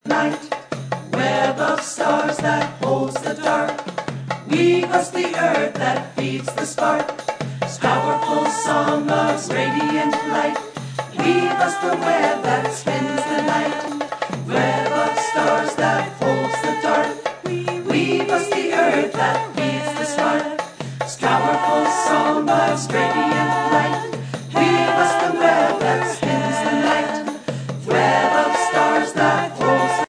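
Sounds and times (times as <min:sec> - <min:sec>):
powerful song: 0:00.1 - 0:30.0.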